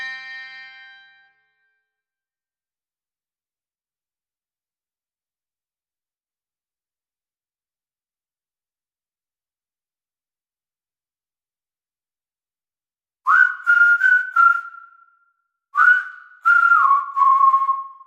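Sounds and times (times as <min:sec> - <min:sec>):
harp: 0:00.0 - 0:01.6
slide whistle: 0:13.2 - 0:18.0.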